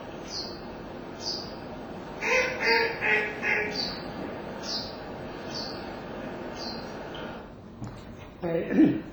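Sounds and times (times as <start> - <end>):
small birds chirping faintly: 0.0 - 7.4
mallard duck calling on the Yukawa river: 2.2 - 4.0.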